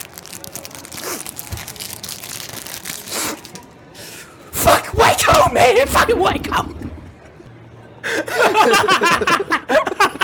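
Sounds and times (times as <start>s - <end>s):
crinkly adhesive-sealed plastic pack ripping open: 0.0s - 3.7s
speech: 5.2s - 6.8s, 8.5s - 9.9s.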